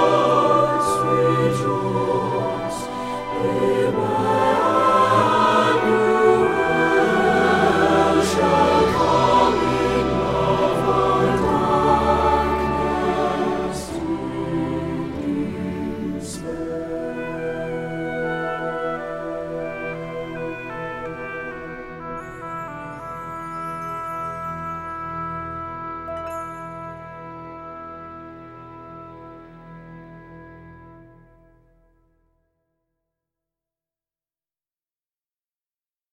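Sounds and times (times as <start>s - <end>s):
SATB choir singing a Christmas carol: 0.0s - 23.1s.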